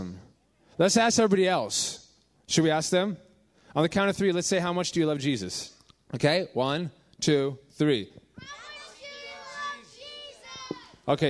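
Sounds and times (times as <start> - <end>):
speech: 0.8 - 8.6, 11.1 - 11.2
children shouting and screaming: 8.4 - 11.1.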